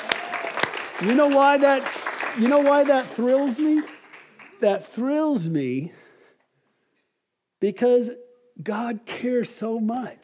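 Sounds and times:
crowd clapping: 0.0s - 5.4s
speech: 1.0s - 4.0s, 4.6s - 6.0s, 7.6s - 10.2s.

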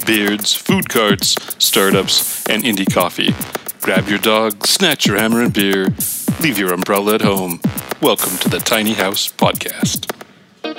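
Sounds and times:
speech: 0.0s - 10.2s
hand clap: 10.0s - 10.3s.

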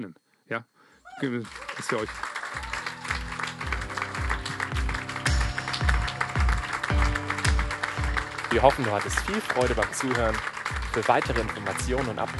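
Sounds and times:
speech: 0.0s - 2.8s, 8.5s - 12.3s
applause: 1.2s - 12.3s.

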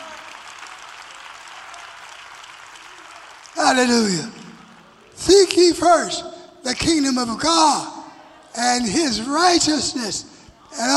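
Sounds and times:
audience clapping hands: 0.0s - 5.7s
speech: 3.6s - 4.4s, 5.2s - 7.9s, 8.5s - 10.9s.

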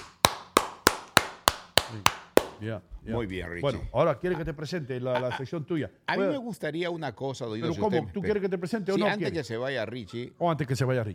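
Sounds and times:
applause: 0.0s - 2.6s
speech: 1.9s - 11.1s.

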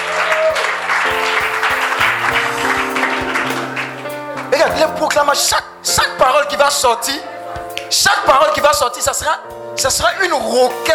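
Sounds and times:
church congregation clapping rhythmically during worship: 0.0s - 5.2s
sustained musical tones and low notes: 1.0s - 8.3s
speech: 5.0s - 10.9s.

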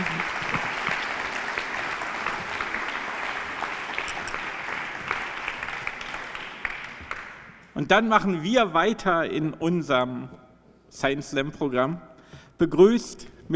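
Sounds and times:
audience clapping: 0.0s - 7.8s
speech: 7.8s - 13.5s.

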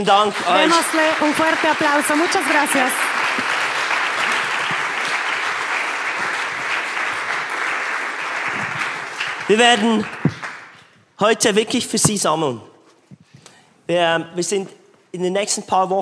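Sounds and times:
speech: 0.0s - 3.6s, 9.5s - 10.2s, 11.2s - 12.7s, 13.9s - 16.0s
applause: 0.0s - 10.9s.

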